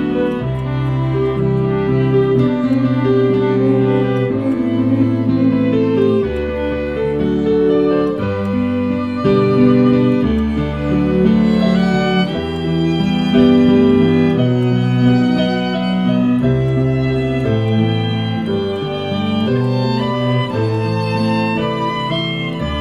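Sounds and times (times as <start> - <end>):
piano: 0.0 - 22.7
strings: 0.0 - 22.7.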